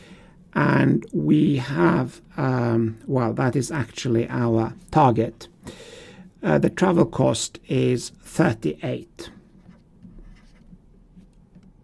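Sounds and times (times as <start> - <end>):
speech: 0.6 - 9.4
pen writing the number 38 in blue: 9.5 - 11.4.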